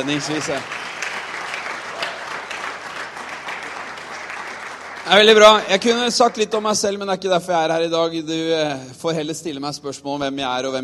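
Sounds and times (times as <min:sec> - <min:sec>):
speech: 0:00.0 - 0:00.9, 0:05.1 - 0:10.8
audience applause: 0:00.0 - 0:06.6.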